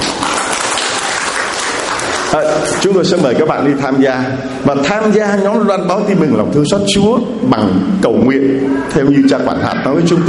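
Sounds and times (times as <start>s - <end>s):
applause at a Catholic church gathering welcoming volunteers: 0.0s - 2.9s
speech: 2.3s - 10.2s.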